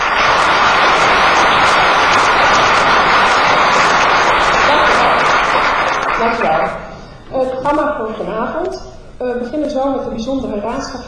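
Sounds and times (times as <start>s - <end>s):
audience applause: 0.0s - 6.7s
speech: 7.7s - 11.0s.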